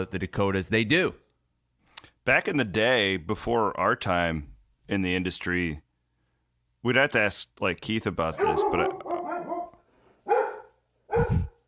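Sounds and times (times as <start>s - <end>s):
speech: 0.0s - 1.2s, 2.3s - 5.8s, 6.8s - 9.1s
dog barking: 8.3s - 11.6s.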